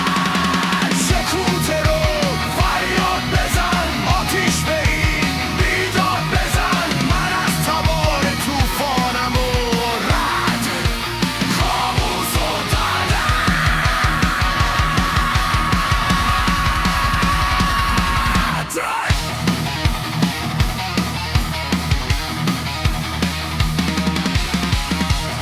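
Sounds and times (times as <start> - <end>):
fast double kick drums: 0.0 - 19.3
heavy distortion: 0.0 - 25.4.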